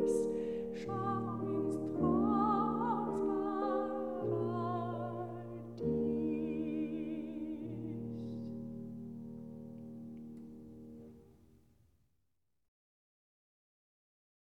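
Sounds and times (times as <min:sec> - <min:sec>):
lullaby cradle song: 0:00.0 - 0:09.0.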